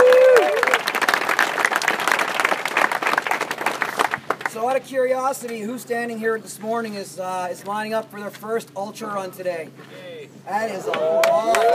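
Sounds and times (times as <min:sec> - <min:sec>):
crowd applause at race start: 0:00.0 - 0:04.5, 0:10.9 - 0:11.7
speech: 0:04.8 - 0:11.7.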